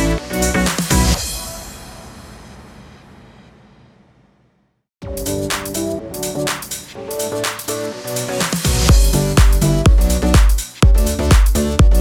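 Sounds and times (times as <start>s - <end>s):
electro house music bed in G minor: 0.0s - 1.7s, 5.0s - 11.9s.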